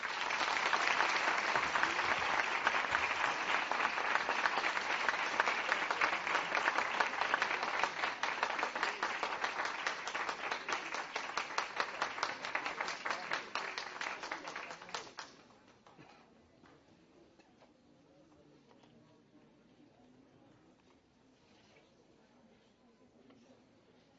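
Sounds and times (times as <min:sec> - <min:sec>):
audience applause for a speaker at a Persian-language event: 0:00.0 - 0:15.3.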